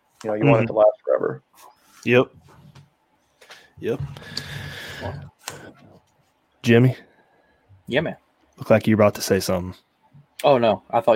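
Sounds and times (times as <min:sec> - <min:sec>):
speech: 0:00.2 - 0:02.5, 0:03.8 - 0:05.8, 0:06.6 - 0:07.1, 0:07.9 - 0:11.1
breathing into a microphone: 0:03.4 - 0:05.9.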